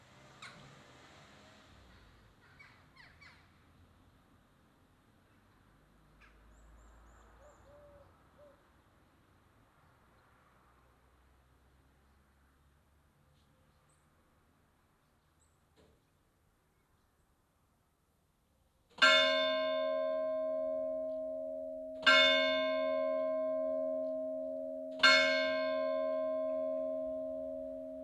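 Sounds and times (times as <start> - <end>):
Angelus bells ringing: 19.0 - 28.0.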